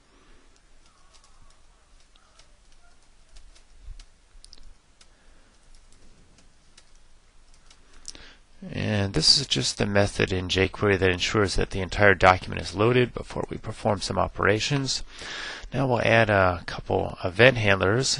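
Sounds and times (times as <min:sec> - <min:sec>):
computer keyboard keys clicking while code is typed: 0:00.8 - 0:07.8
speech: 0:09.2 - 0:18.1.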